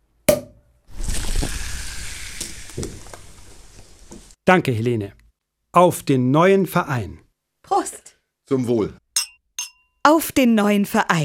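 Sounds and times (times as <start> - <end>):
cork pop with a short ring: 0.3 - 0.6
champagne being poured into glasses: 0.9 - 4.4
speech: 4.5 - 7.9, 8.5 - 9.0, 10.0 - 11.2.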